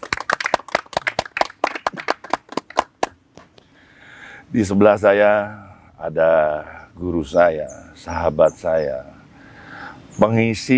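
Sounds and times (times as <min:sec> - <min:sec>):
audience clapping: 0:00.0 - 0:03.2
speech: 0:04.5 - 0:09.1, 0:10.2 - 0:10.7.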